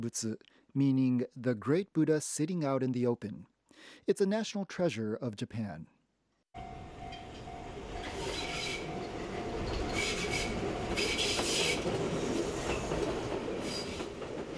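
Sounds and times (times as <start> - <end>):
speech: 0.0 - 6.0
train passing on rails: 6.6 - 14.5.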